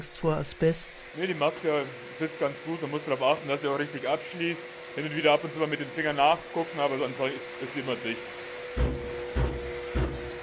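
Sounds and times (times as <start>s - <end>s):
speech: 0.0s - 9.0s
asbestos dust extraction unit knocking loudly: 8.7s - 10.4s.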